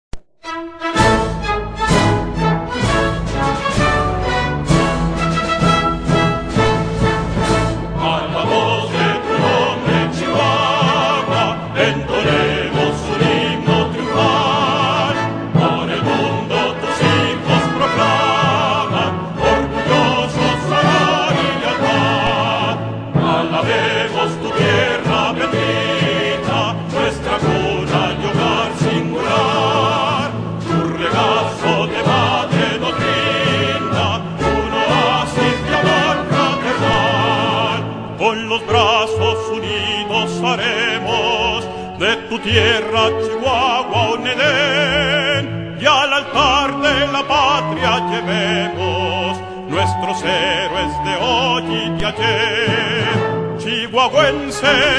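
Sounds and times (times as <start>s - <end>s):
state anthem music: 0.4s - 54.9s.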